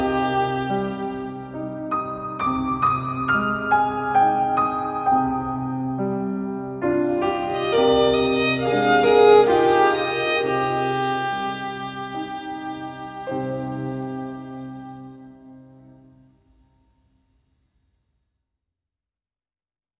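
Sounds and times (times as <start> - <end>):
violin: 0.0 - 3.0, 6.8 - 15.9
piano: 0.0 - 17.9.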